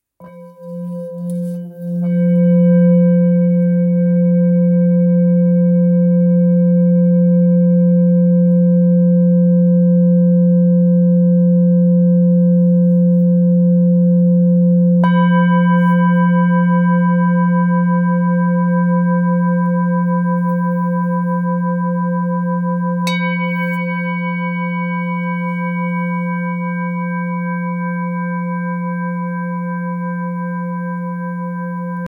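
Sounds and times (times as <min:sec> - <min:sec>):
Tibetan singing bowls in F: 0:00.2 - 0:32.0.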